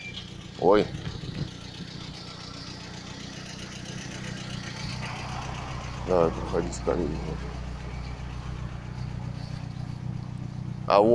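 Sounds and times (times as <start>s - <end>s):
light delivery van arriving, engine idling: 0.0s - 11.1s
speech: 0.6s - 1.0s, 6.1s - 7.7s, 10.9s - 11.1s.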